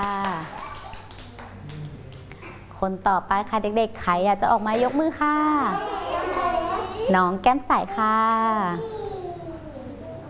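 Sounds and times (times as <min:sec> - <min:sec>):
children clapping: 0:00.0 - 0:02.3
speech: 0:02.8 - 0:06.0, 0:07.1 - 0:09.0.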